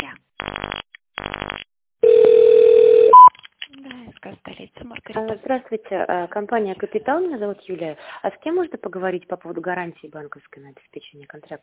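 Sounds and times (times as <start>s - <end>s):
telephone dialing tones: 2.0s - 3.3s
speech: 4.6s - 11.6s.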